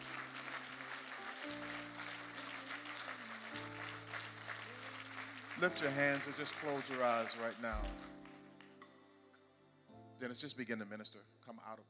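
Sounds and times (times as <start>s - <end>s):
hand clapping in praise: 0.0s - 8.9s
speech: 5.6s - 8.2s, 10.2s - 11.8s.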